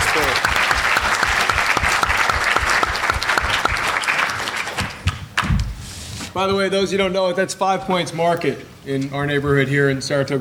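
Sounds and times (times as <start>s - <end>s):
audience applause: 0.0s - 5.2s
speech: 6.4s - 10.3s.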